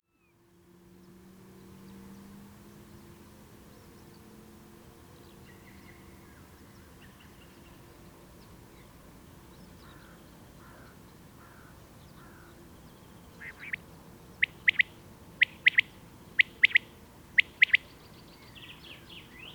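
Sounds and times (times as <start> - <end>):
common quail Coturnix coturnix song: 13.3 - 19.5.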